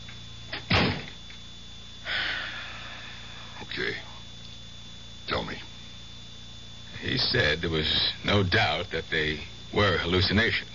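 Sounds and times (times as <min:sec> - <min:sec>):
door shutting with a thud: 0:00.5 - 0:01.2
speech: 0:07.2 - 0:10.7.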